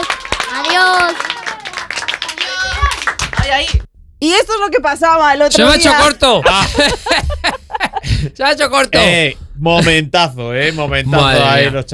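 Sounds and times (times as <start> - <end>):
audience applause: 0.0 - 3.7
speech: 3.6 - 7.3, 8.4 - 11.9
laughter: 6.2 - 8.3.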